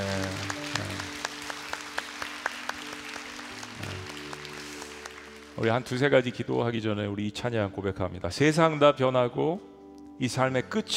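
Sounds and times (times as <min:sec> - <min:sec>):
audience applause: 0:00.0 - 0:05.9
speech: 0:05.6 - 0:10.9.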